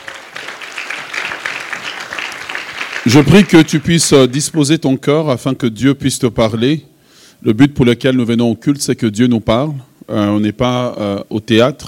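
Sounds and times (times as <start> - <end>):
church congregation applauding during a worship service: 0.0 - 4.7
speech: 3.1 - 11.8.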